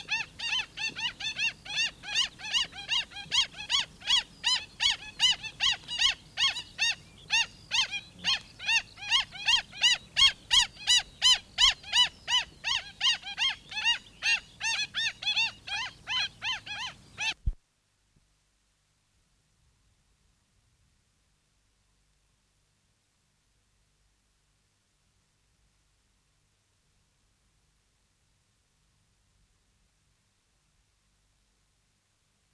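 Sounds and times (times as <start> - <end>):
black stilt singing: 0.0 - 17.5.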